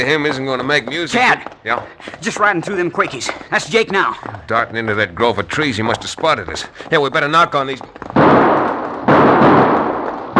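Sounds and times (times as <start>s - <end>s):
speech: 0.0s - 8.2s
gunshots from aspens: 8.1s - 10.3s.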